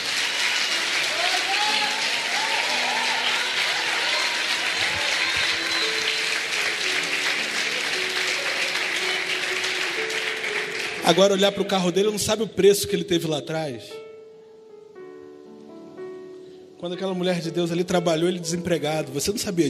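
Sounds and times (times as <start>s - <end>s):
church congregation clapping during a Portuguese-language service: 0.0s - 12.0s
speech: 11.1s - 14.0s, 16.8s - 19.6s.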